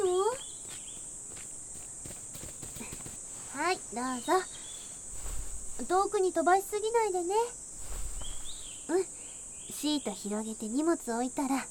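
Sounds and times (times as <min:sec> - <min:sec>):
high insect-like drone: 0:00.0 - 0:11.7
children's footsteps running on a picnic outing: 0:00.3 - 0:03.3
speech: 0:03.6 - 0:04.6, 0:05.8 - 0:07.6, 0:08.9 - 0:09.1, 0:09.8 - 0:11.7.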